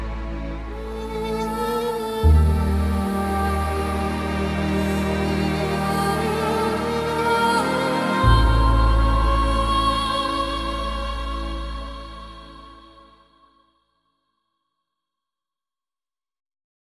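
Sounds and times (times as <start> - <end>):
instrumental music: 0.0 - 13.4.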